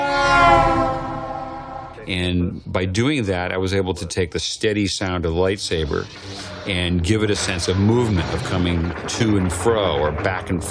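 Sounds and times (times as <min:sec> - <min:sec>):
car horn blasting while driving by: 0:00.0 - 0:02.3
speech: 0:02.1 - 0:10.7.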